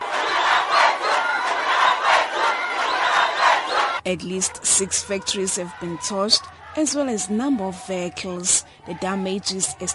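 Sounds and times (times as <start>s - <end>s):
crowd shouting at the leadership: 0.0s - 4.0s, 4.8s - 9.9s
speech: 4.1s - 9.9s.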